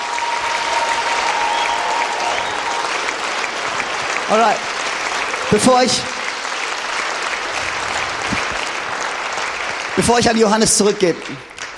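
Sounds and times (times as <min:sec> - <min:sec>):
audience applause: 0:00.0 - 0:11.7
speech: 0:04.3 - 0:04.7, 0:05.5 - 0:06.1, 0:10.0 - 0:11.5.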